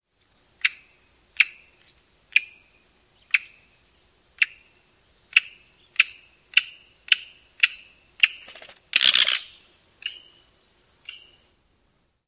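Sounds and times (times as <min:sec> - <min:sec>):
Black-backed Woodpecker pik calls: 0:00.6 - 0:03.8, 0:04.4 - 0:11.5
Black-backed Woodpecker flight churr: 0:06.0 - 0:10.3.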